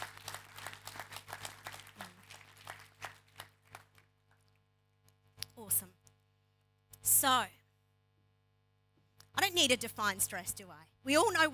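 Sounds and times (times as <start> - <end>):
crowd clapping: 0.0 - 4.7
speech: 7.2 - 7.6, 9.6 - 11.5.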